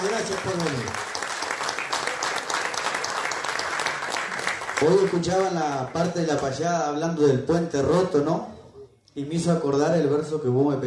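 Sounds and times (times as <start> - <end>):
audience applause: 0.0 - 6.1
speech: 0.3 - 1.1, 4.8 - 8.5, 9.2 - 10.8.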